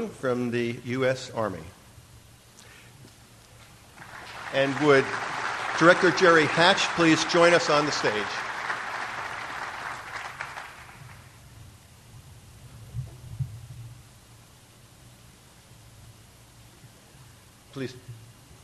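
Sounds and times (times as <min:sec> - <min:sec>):
speech: 0:00.0 - 0:01.8, 0:04.5 - 0:08.5, 0:17.8 - 0:18.1
low steady hum: 0:00.0 - 0:18.6
audience applause: 0:04.0 - 0:11.4.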